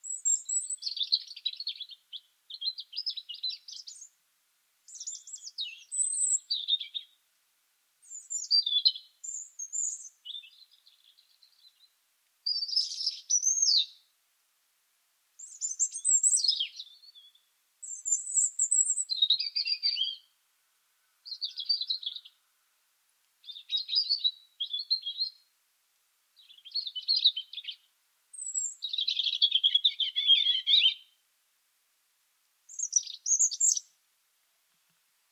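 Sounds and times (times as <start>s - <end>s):
European robin song: 0.0s - 4.2s, 4.8s - 7.3s, 8.0s - 14.2s, 15.4s - 20.4s, 21.0s - 22.6s, 23.4s - 25.6s, 26.3s - 31.3s, 32.7s - 34.1s.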